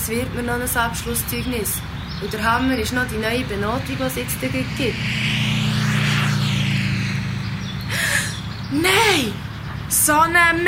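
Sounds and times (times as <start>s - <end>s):
speech: 0.1s - 5.4s, 8.7s - 10.6s
motor scooter driving past: 1.0s - 9.9s
steady low drone: 1.8s - 9.7s.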